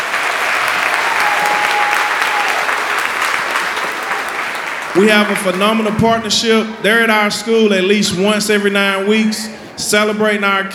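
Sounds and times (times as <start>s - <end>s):
crowd applauding in sustained round of applause: 0.0s - 6.2s
speech: 5.0s - 10.7s.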